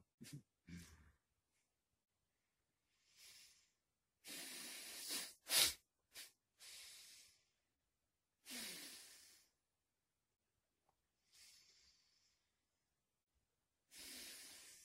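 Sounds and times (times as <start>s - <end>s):
breathing through a blocked nose during a breathing exercise: 3.0s - 7.5s, 8.4s - 9.6s, 11.2s - 12.5s, 13.9s - 14.8s.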